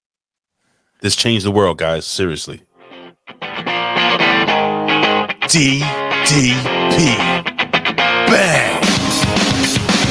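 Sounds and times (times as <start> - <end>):
speech: 1.0 - 2.7, 5.5 - 7.5, 8.2 - 9.8
heavily distorted electric guitar riff: 2.8 - 10.0.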